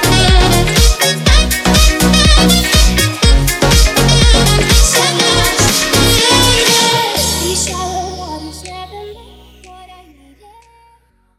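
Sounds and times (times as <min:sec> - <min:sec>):
saxophone: 0:00.0 - 0:08.4.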